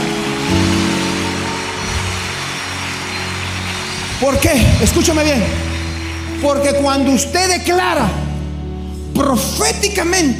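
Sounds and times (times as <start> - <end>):
loud audience applause: 0.0 - 8.0
speech: 4.2 - 5.8, 6.4 - 8.2, 9.2 - 10.3.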